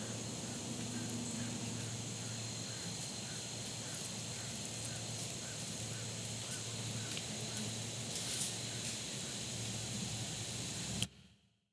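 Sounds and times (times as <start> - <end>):
insects droning: 0.0 - 11.0.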